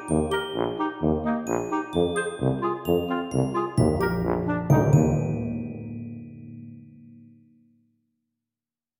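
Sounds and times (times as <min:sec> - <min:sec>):
dizzy perky cheerful music: 0:00.0 - 0:06.8.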